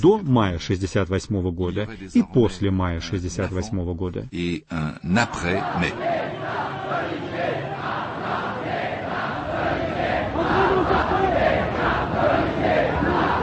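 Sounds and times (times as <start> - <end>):
speech: 0.0 - 7.3
crowd of young people chanting on Boulevard Saint-Michel in Paris, May 1968: 5.2 - 13.4.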